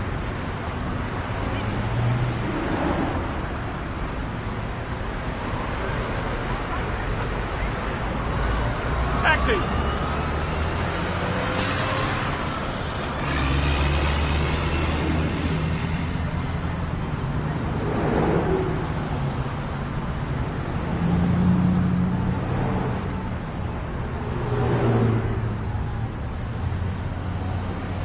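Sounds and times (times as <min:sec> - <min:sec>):
street noise: 0:00.0 - 0:28.0.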